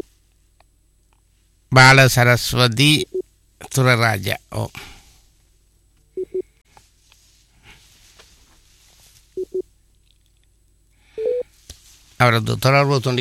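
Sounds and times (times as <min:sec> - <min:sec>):
speech: 0:01.8 - 0:04.9, 0:12.2 - 0:13.1
call-waiting tone beeps on a telephone line: 0:09.4 - 0:09.6, 0:11.2 - 0:11.5
quiet telephone line hiss: 0:11.1 - 0:11.6.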